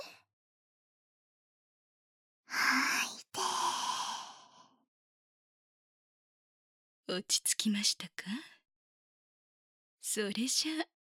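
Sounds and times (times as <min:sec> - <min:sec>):
slow calming breaths: 0:02.5 - 0:04.8
speech: 0:07.1 - 0:08.6, 0:10.0 - 0:10.9.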